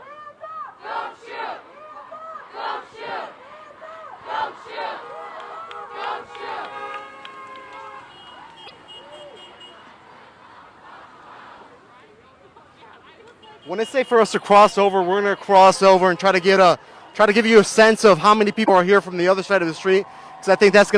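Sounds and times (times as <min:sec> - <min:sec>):
large crowd of street protesters chanting: 0:00.6 - 0:18.9
car horns honking: 0:04.9 - 0:10.0, 0:13.1 - 0:19.3
speech: 0:13.7 - 0:20.9.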